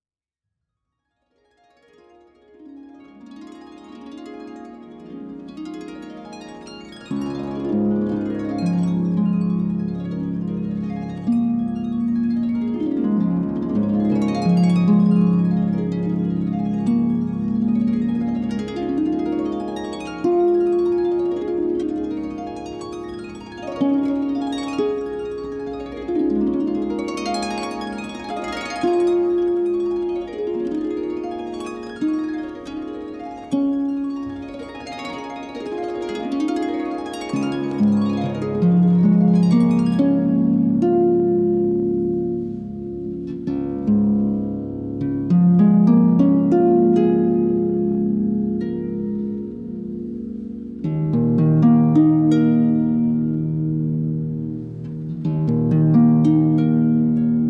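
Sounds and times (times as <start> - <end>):
harp melody: 1.6 - 57.4.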